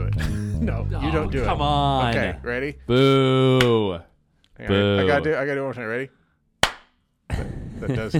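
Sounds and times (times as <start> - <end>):
speech: 0.1 - 6.2, 7.3 - 8.1
group clapping in unison: 3.5 - 3.9, 6.6 - 7.0
scattered clapping: 6.7 - 6.9.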